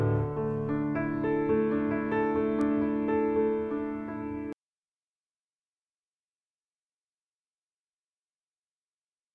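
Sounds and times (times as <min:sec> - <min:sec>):
instrumental hymn: 0:00.0 - 0:04.6.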